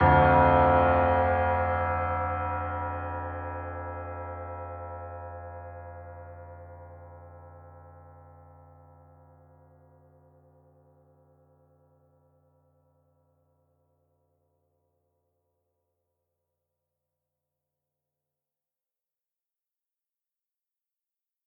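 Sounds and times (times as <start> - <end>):
piano theme: 0.0 - 7.4.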